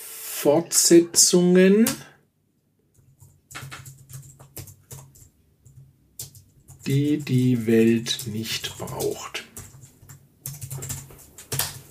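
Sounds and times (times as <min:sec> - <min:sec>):
speech: 0:00.4 - 0:02.1, 0:06.9 - 0:09.5
typing notes on a computer keyboard: 0:02.9 - 0:11.8.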